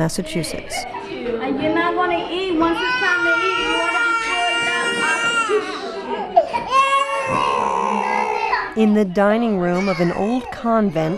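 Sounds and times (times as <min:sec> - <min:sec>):
speech: 0:00.0 - 0:04.0, 0:08.8 - 0:11.1
fussy baby crying in a shelter dining room: 0:02.7 - 0:08.8, 0:09.7 - 0:11.1.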